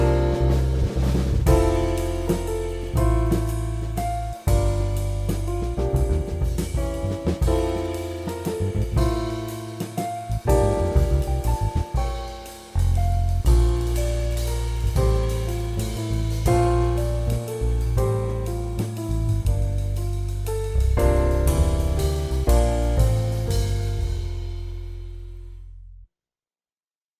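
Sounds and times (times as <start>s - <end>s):
jazz flavor waltz: 0.0s - 25.2s.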